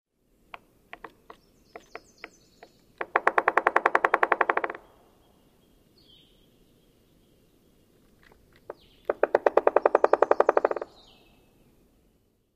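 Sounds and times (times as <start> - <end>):
woodpecker drumming: 0.5 - 4.9, 7.9 - 11.1.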